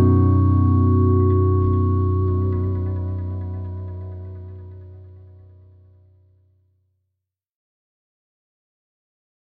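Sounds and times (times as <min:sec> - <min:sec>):
tweed guitar amplifier tone: 0:00.0 - 0:06.2.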